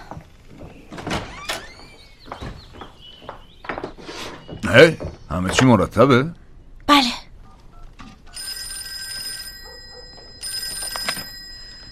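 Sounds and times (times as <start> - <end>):
speech: 4.7 - 7.1
telephone ringing in the Wheeler home: 7.5 - 11.9.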